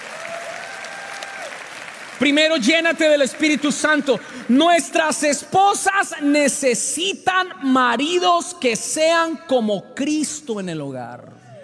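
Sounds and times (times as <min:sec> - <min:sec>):
audience applause: 0:00.0 - 0:04.6
speech: 0:02.2 - 0:11.4.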